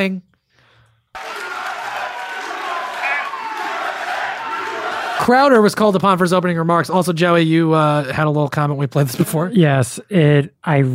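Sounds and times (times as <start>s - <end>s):
speech: 0.0s - 0.3s, 5.3s - 10.9s
crowd booing: 1.1s - 5.6s.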